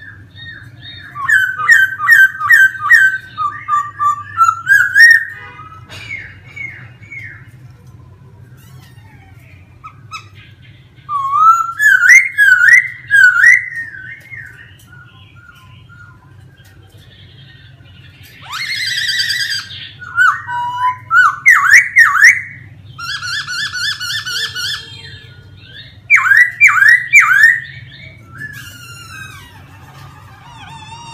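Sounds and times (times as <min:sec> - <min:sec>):
laughingthrush whistling song: 0:00.0 - 0:07.5, 0:11.1 - 0:16.4, 0:18.3 - 0:31.1.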